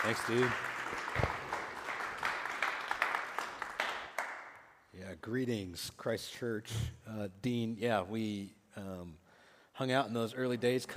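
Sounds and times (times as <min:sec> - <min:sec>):
speech: 0:00.0 - 0:01.3, 0:05.2 - 0:09.2, 0:09.8 - 0:10.9
crowd applauding: 0:00.0 - 0:04.7.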